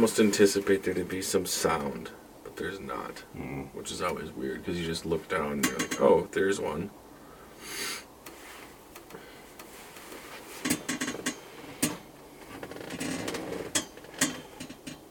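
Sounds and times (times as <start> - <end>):
speech: 0.0 - 7.0
old metal chair clinking: 9.0 - 15.0.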